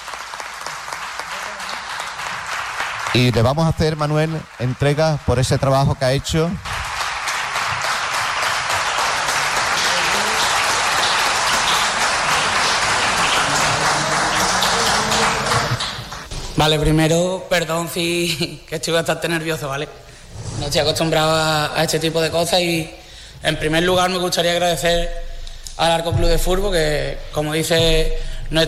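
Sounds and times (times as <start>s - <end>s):
audience applause: 0.0s - 5.9s, 6.6s - 16.3s
speech: 3.1s - 6.7s, 16.6s - 20.0s, 20.6s - 25.2s, 25.8s - 28.6s.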